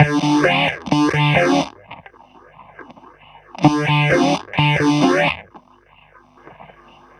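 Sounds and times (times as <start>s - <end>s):
roots disco guitar: 0.0s - 1.8s, 3.6s - 5.4s.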